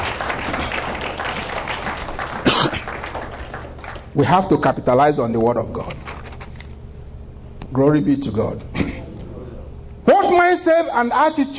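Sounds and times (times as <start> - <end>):
audience clapping: 0.0 - 4.8
speech: 4.2 - 6.0, 7.7 - 8.7, 10.5 - 11.5.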